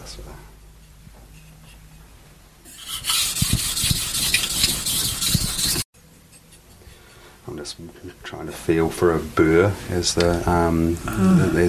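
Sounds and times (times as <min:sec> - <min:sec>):
steel blade sharpened on a water stone: 0:02.7 - 0:05.9
speech: 0:07.7 - 0:11.6.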